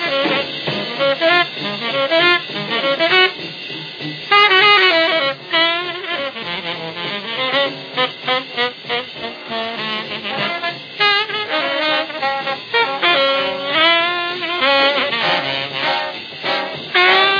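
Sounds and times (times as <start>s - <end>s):
jazz orchestra playing live: 0.0s - 17.3s.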